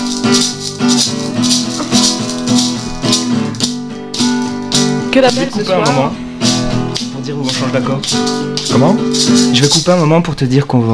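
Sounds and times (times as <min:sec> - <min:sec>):
maracas shaken during a music session: 0:00.0 - 0:10.2
speech: 0:05.2 - 0:06.2, 0:07.3 - 0:10.9.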